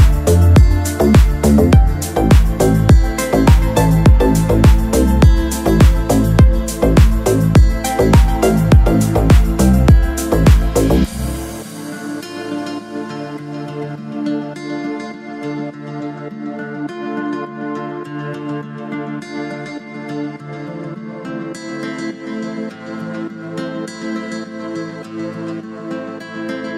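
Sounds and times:
deep house remix: 0.0s - 14.6s.

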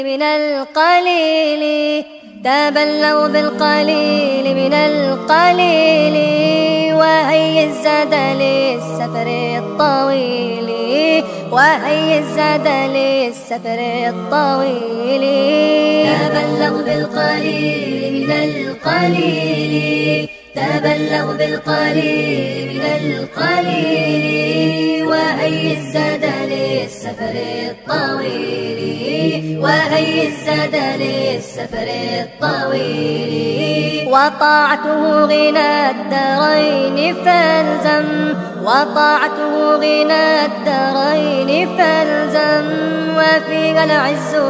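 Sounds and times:
sped-up nasheed: 0.2s - 44.4s.

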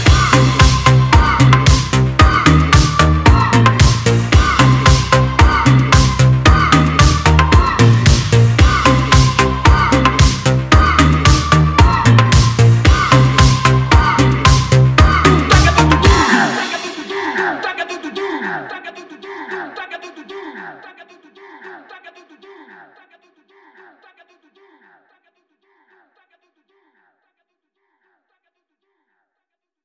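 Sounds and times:
disco remix music: 0.0s - 21.1s.

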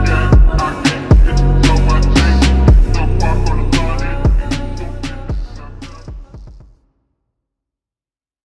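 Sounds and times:
slowed music with reverb: 0.0s - 6.2s.

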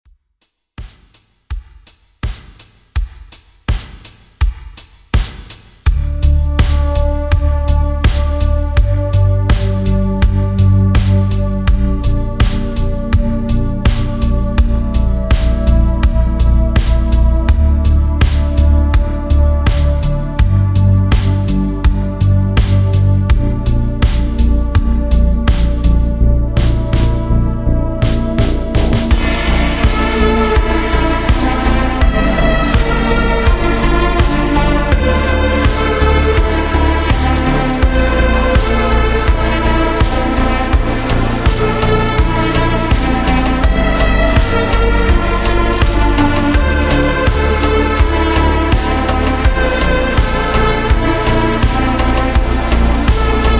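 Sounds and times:
slowed retrowave music with reverb: 1.5s - 53.5s.

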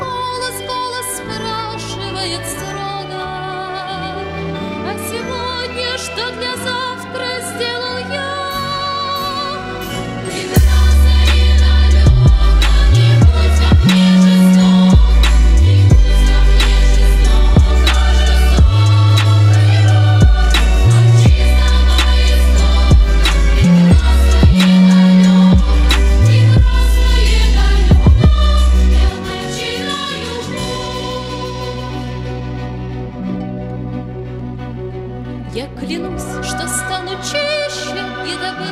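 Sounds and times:
trap remix: 10.4s - 29.2s.

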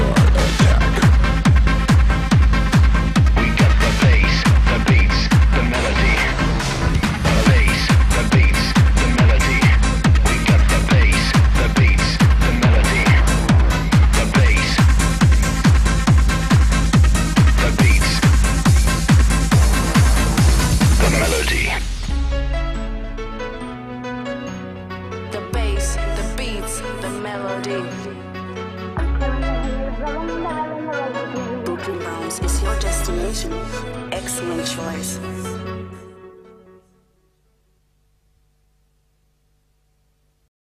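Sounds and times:
bass beats: 0.0s - 24.3s, 29.0s - 30.7s, 32.4s - 34.2s
melody: 19.6s - 37.0s.

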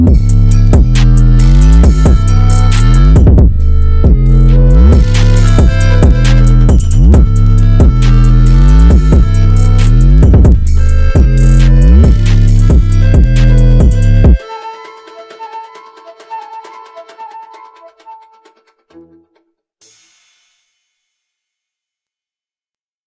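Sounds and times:
trap phonk remix: 0.0s - 18.4s.

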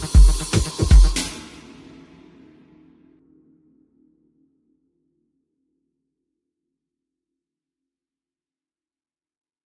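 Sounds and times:
afro three-step remix: 0.0s - 2.3s.

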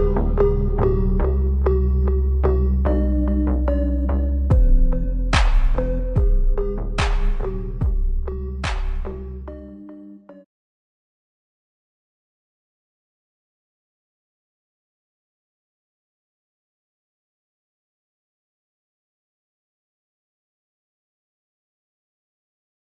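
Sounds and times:
super slowed music with reverb: 0.0s - 10.4s.

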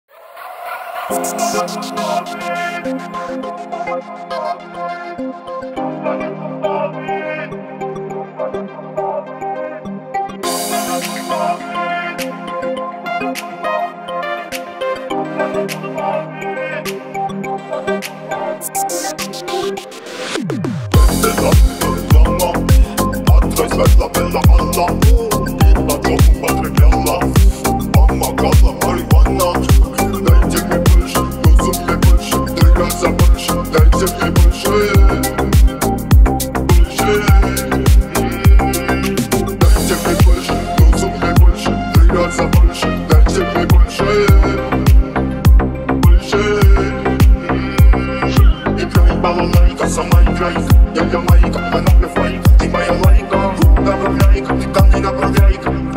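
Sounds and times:
deep house remix: 0.8s - 55.9s.

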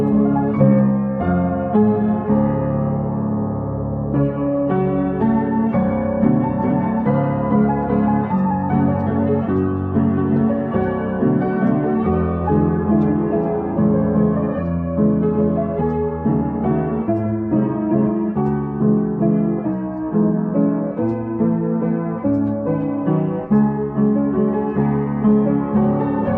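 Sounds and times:
distorted slowed piano with reverb: 0.0s - 26.3s.

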